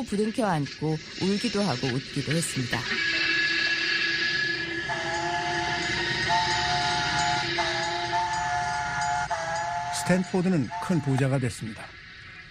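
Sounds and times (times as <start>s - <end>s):
speech: 0.0s - 3.3s, 10.1s - 12.0s
steam train running with rumble and hiss: 0.0s - 12.4s
long steam whistle: 1.0s - 11.9s.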